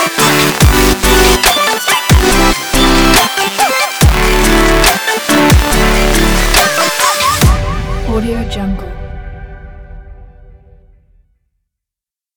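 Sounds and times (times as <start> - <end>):
happy future bass music: 0.0 - 8.7.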